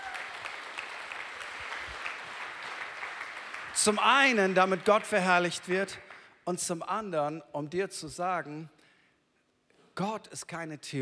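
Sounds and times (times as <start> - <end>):
audience applause: 0.0 - 6.2
speech: 3.8 - 8.8, 10.0 - 10.9.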